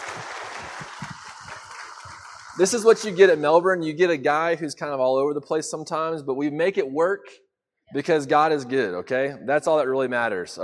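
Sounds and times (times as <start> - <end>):
audience applauding: 0.0 - 4.0
speech: 2.6 - 10.6.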